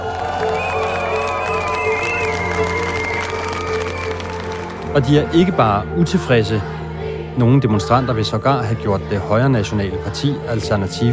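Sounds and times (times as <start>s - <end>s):
large street protest crowd cheering and shouting: 0.0s - 4.8s
whistles: 0.5s - 4.3s
speech: 5.0s - 6.8s, 7.4s - 11.1s.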